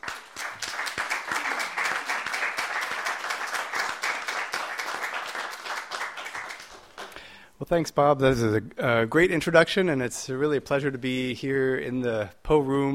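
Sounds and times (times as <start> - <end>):
audience applause welcoming a speaker at a library event: 0.0 - 7.2
speech: 7.6 - 12.9.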